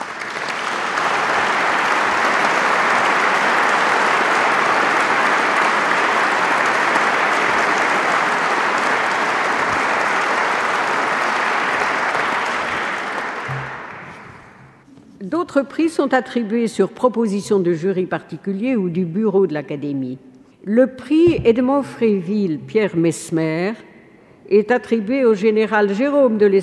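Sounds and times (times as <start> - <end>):
audience applause: 0.0 - 14.8
speech: 15.6 - 23.9, 24.5 - 26.6.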